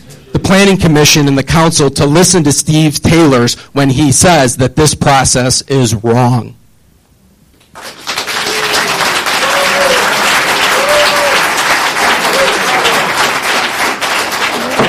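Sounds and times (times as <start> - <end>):
speech: 0.5 - 6.6
audience applause: 7.7 - 14.8.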